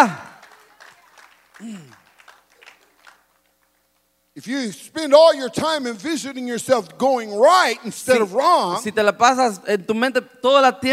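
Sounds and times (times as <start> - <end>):
speech: 0.0 - 0.2, 4.4 - 10.9
audience clapping and applause: 0.0 - 4.0.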